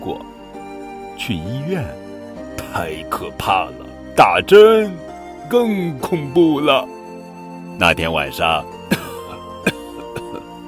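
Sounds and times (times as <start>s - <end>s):
faint steady tonal background: 0.0s - 10.6s
speech: 1.2s - 2.0s, 2.7s - 6.9s, 7.8s - 8.8s
child coughing: 8.9s - 10.4s.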